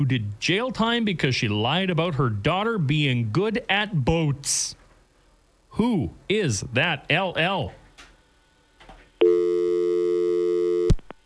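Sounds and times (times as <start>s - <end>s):
speech: 0.0s - 4.8s, 5.8s - 7.8s
telephone busy signal: 9.2s - 11.0s.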